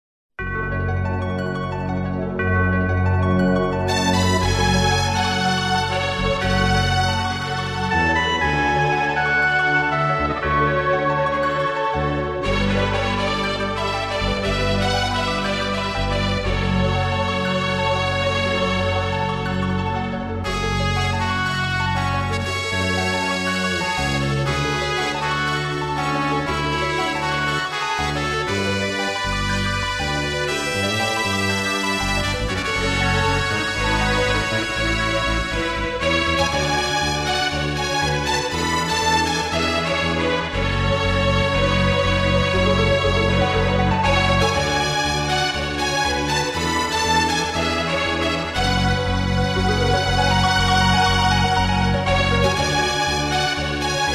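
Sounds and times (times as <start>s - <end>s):
background music: 0.4s - 54.1s.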